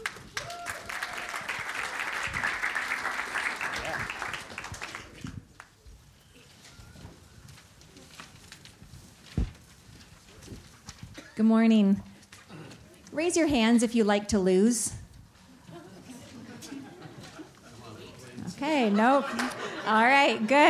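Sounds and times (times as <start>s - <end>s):
audience applause welcoming a speaker on stage: 0.0s - 5.7s
room noise: 0.0s - 20.6s
speech: 11.4s - 12.1s, 13.2s - 15.0s, 18.8s - 20.6s
laughter: 15.5s - 20.6s.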